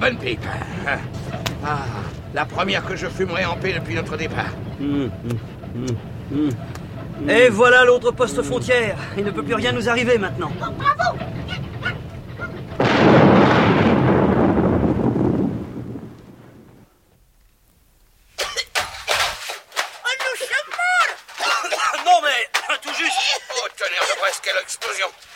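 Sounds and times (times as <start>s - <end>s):
speech: 0.0s - 11.6s
laughter: 0.2s - 12.8s, 20.0s - 25.2s
practice firecrackers exploding inside a tank turret: 12.8s - 19.8s.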